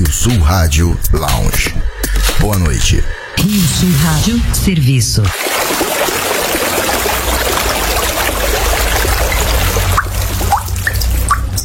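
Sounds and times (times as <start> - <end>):
speech: 0.1 - 6.3
water trickling: 5.3 - 11.6.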